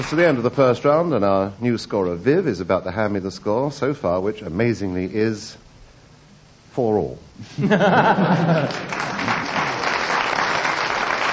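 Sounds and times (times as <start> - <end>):
audience clapping: 0.0 - 0.5, 8.6 - 11.3
speech: 0.0 - 5.6, 6.8 - 9.4
laughter: 7.4 - 9.8.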